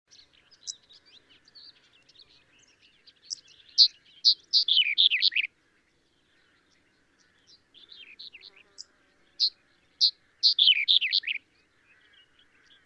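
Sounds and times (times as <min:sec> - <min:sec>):
chestnut-eared bunting calls: 0:00.1 - 0:05.5, 0:07.2 - 0:11.4.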